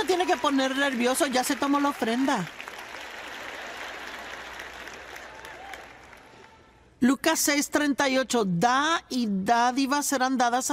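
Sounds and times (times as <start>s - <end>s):
speech: 0.0s - 2.6s, 7.0s - 10.7s
applause: 0.0s - 6.6s.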